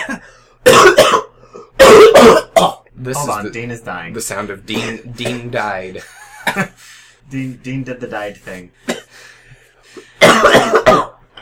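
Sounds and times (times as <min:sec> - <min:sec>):
man coughing and hawking up phlegm into a paper towel: 0:00.0 - 0:02.9, 0:04.7 - 0:05.6, 0:06.2 - 0:06.8, 0:08.8 - 0:09.2, 0:10.0 - 0:11.4
speech: 0:03.0 - 0:08.9.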